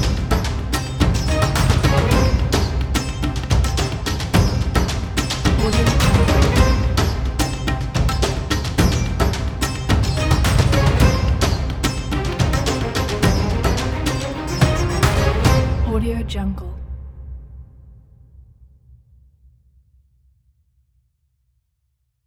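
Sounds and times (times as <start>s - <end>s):
Indian epic action music: 0.0s - 17.4s.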